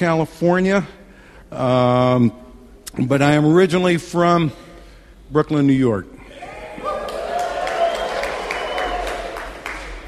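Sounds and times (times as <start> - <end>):
speech: 0.0 - 4.6, 5.3 - 6.2
audience applause: 6.8 - 10.0.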